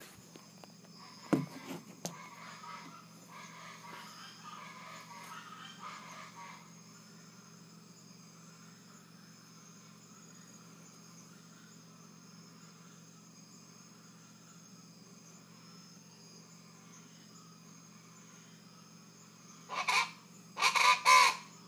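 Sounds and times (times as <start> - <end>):
rufous-vented chachalacas cackling chorus: 1.0 - 6.9, 19.7 - 21.6.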